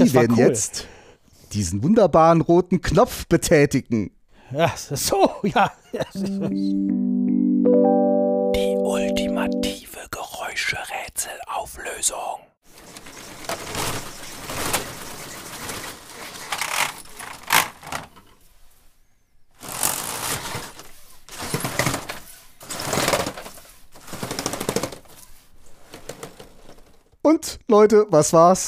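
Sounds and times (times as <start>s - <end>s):
speech: 0.0s - 0.9s, 1.5s - 12.5s, 27.3s - 28.6s
laughter: 4.6s - 6.8s
roller shutter rattling down and up: 12.7s - 18.3s, 19.6s - 27.1s.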